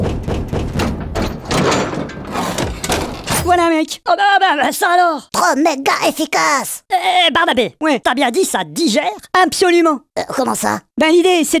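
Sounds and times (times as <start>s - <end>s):
heavy old car wheel rim dropped in, clanking: 0.0s - 3.6s
speech: 3.5s - 11.5s.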